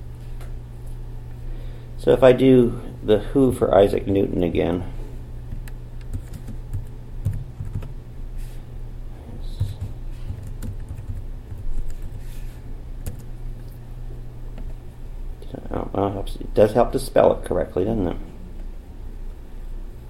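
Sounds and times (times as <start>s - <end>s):
speech: 2.0s - 5.0s, 16.6s - 18.3s
typing on a computer keyboard: 6.1s - 7.9s, 9.6s - 12.2s, 13.0s - 13.3s.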